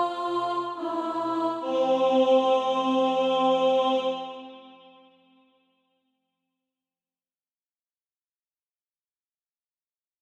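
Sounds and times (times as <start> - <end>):
alto voice singing SATB practice music: 0.0 - 5.4.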